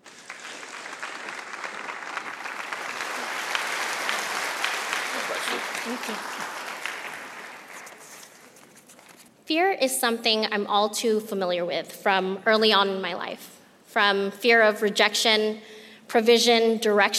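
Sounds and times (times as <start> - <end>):
church audience applauding to welcome a speaker: 0.0 - 8.8
speech: 5.5 - 6.6, 9.5 - 17.1.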